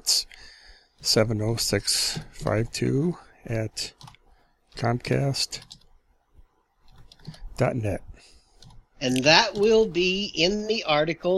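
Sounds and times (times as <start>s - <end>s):
speech: 1.0s - 4.1s, 4.8s - 5.8s, 7.3s - 8.1s, 9.0s - 11.3s
typing on a computer keyboard: 3.8s - 4.2s, 5.5s - 5.9s, 6.8s - 7.5s, 8.5s - 8.8s.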